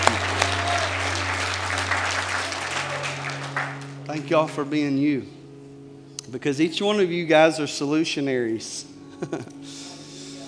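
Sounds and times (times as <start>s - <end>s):
audience applause: 0.0s - 4.6s
low electrical hum: 0.0s - 10.4s
speech: 4.3s - 5.4s, 6.3s - 9.8s.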